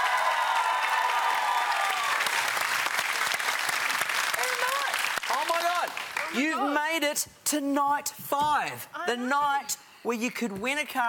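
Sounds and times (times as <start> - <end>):
studio audience applause: 0.0 - 6.4
speech: 6.4 - 11.0.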